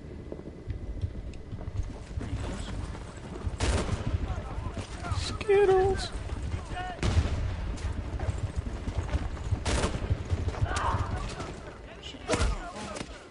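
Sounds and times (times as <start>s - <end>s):
rumbling video game battle background: 0.0s - 13.2s
video game gunfire: 3.4s - 12.9s
speech: 5.5s - 6.2s.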